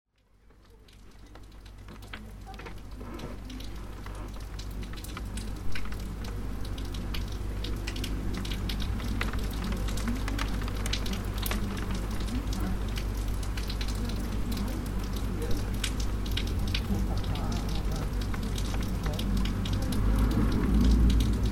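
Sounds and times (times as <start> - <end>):
rain: 0.1 - 21.5.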